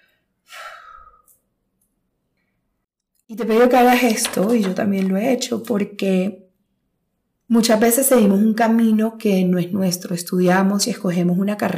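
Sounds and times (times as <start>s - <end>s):
deep breath during a guided meditation: 0.0s - 1.4s
speech: 3.3s - 6.4s, 7.5s - 11.7s.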